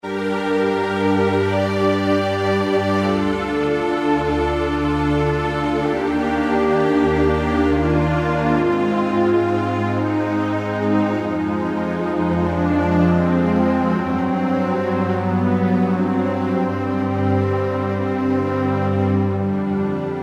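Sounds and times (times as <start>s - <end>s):
Yamaha TG33 synthesizer: 0.0s - 20.2s.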